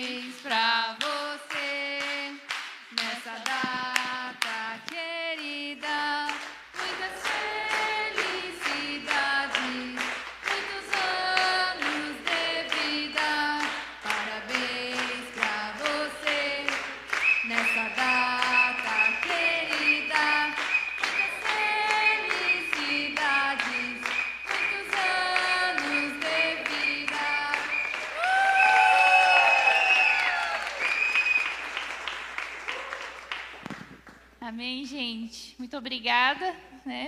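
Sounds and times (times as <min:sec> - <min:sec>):
rhythmic hand clapping: 0:00.0 - 0:34.3
church congregation singing a birthday song in Portuguese: 0:03.0 - 0:28.2.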